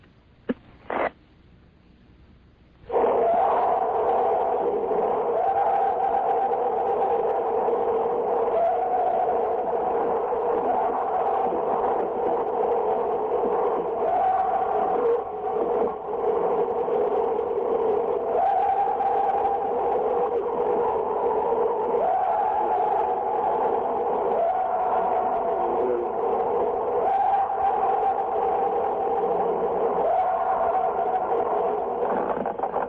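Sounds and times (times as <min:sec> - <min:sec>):
constant hiss of tape recorder noise: 0:00.0 - 0:32.8
long sustained wailing scream, reportedly Bigfoot: 0:02.9 - 0:32.8
short clicks and thumps: 0:32.0 - 0:32.8.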